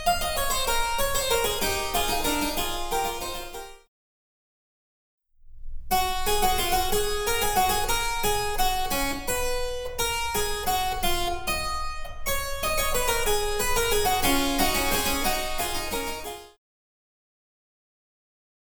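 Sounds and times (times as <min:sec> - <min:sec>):
harpsichord: 0:00.1 - 0:03.8, 0:06.6 - 0:16.5.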